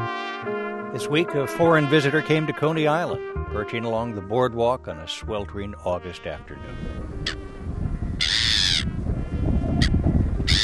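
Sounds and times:
speech: 0.9 - 7.4
gray-hooded gull giving harsh raspy calls: 6.6 - 7.5, 8.2 - 10.6.

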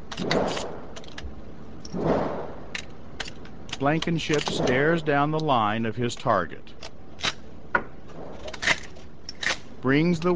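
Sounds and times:
speech: 0.2 - 0.8, 3.8 - 6.8, 9.8 - 10.3
gunshots muffled through concrete wall of a range: 0.2 - 1.0, 1.9 - 2.7.

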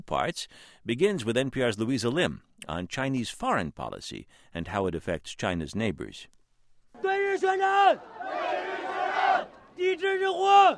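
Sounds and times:
speech: 0.0 - 6.4, 7.0 - 8.8, 9.8 - 10.7
crowd shouting war cries in unison: 7.0 - 10.7.

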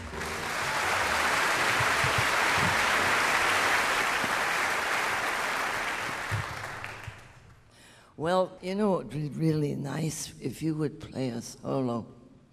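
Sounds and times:
audience applause welcoming a jazz pianist: 0.0 - 7.5
speech: 8.2 - 12.2.

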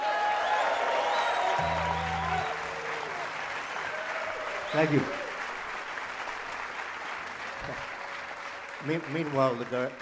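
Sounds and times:
audience applause welcoming a guitarist at the 2013 Newport Jazz Festival: 0.0 - 10.0
low hum: 1.6 - 3.2
speech: 4.7 - 5.2, 8.8 - 10.0.

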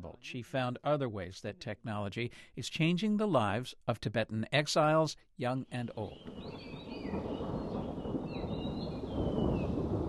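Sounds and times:
speech: 0.0 - 7.3
rain in the Himalayan foothills of Dharamshala India: 6.2 - 10.0.

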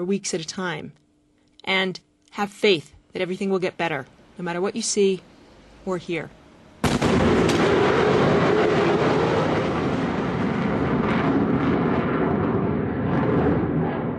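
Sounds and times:
speech: 0.0 - 1.0, 1.6 - 6.4
sonic boom from military jet: 6.8 - 14.1.

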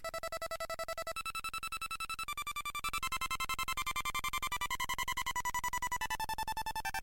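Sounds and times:
one-bit microchip electronic music through a small speaker: 0.0 - 7.0.

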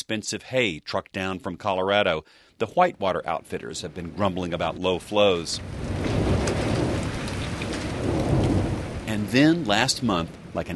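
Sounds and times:
speech: 0.1 - 6.0, 9.3 - 10.7
heavy rain: 3.6 - 10.7
thunder: 5.6 - 9.6.

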